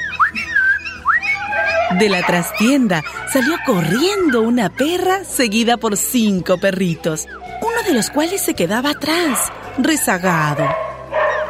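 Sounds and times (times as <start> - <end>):
sharp rising whistles to call dogs: 0.0 - 2.0
speech: 1.9 - 10.8.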